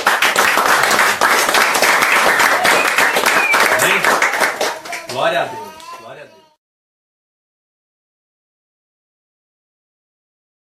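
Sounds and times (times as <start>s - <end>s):
audience applauding: 0.0s - 5.5s
speech: 5.2s - 5.6s.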